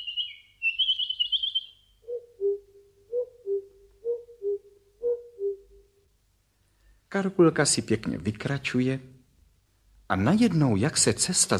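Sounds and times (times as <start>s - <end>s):
birds singing: 0.0s - 5.8s
speech: 7.1s - 9.1s, 10.1s - 11.5s.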